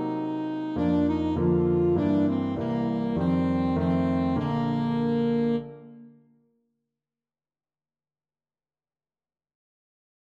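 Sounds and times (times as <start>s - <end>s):
alto saxophone: 0.0s - 6.2s.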